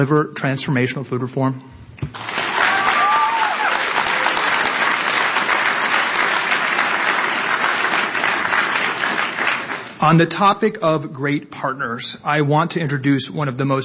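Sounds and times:
speech: 0.0s - 2.3s, 10.0s - 13.8s
audience applause: 2.1s - 10.0s.

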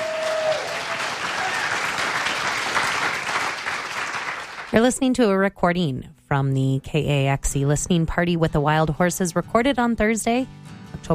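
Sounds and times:
audience applause: 0.0s - 4.8s
speech: 4.7s - 11.1s.

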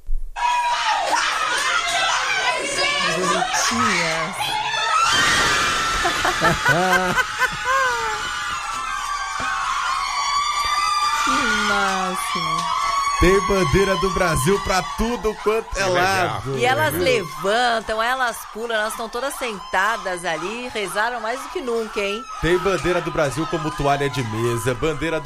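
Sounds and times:
nuns cheering and screaming at a scored goal: 0.4s - 25.2s
women laughing: 5.8s - 8.6s
speech: 6.4s - 8.2s, 11.4s - 25.2s.

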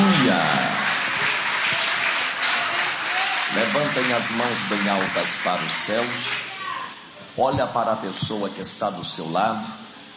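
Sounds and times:
church congregation applauding during a worship service: 0.0s - 6.9s
speech: 3.6s - 6.5s, 7.4s - 9.8s.

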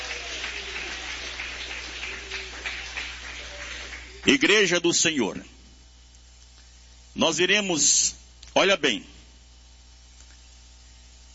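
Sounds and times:
church audience clapping: 0.0s - 4.8s
speech: 4.2s - 5.6s, 7.2s - 9.1s.

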